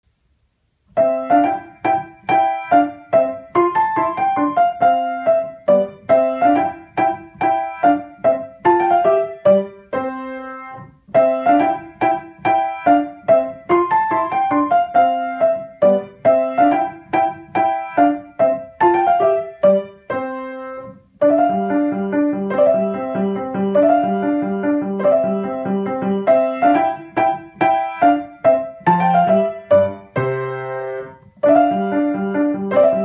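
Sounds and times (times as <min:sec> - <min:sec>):
courtly dance minuet music: 0:00.9 - 0:33.0.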